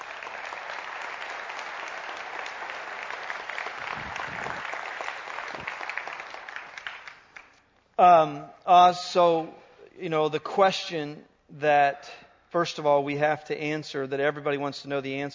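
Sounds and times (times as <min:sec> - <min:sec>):
audience applause at a speaking event: 0:00.0 - 0:07.6
speech: 0:08.0 - 0:15.3.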